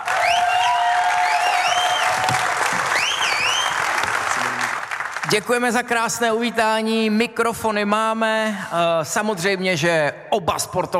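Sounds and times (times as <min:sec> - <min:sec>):
audience applause: 0:00.0 - 0:05.6
speech: 0:05.3 - 0:10.9.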